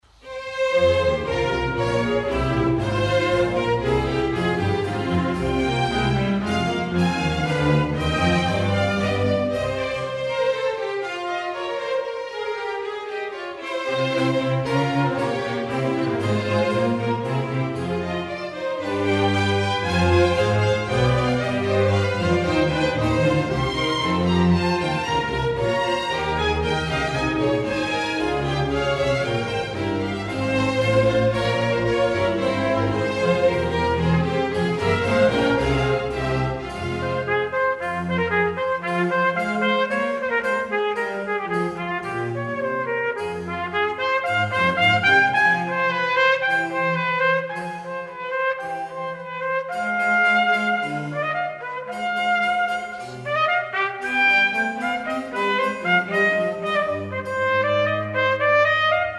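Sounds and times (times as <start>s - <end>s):
oboe concerto in F minor: 0.0s - 59.1s.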